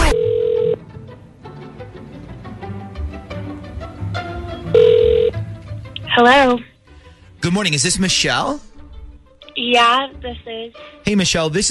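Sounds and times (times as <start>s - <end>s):
telephone ringback tones of an outgoing call: 0.0s - 0.8s, 4.7s - 5.4s
soft music: 0.0s - 11.6s
speech: 6.2s - 6.7s, 7.4s - 8.7s, 9.6s - 11.6s.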